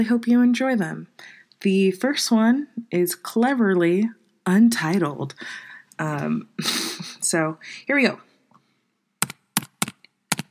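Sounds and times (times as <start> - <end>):
speech: 0.0 - 8.3
computer keyboard clicks: 9.2 - 10.4.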